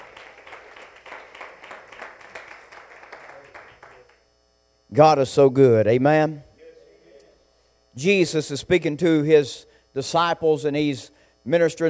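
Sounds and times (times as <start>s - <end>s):
audience hand clapping: 0.0s - 4.2s
speech: 4.9s - 6.5s, 8.0s - 11.8s.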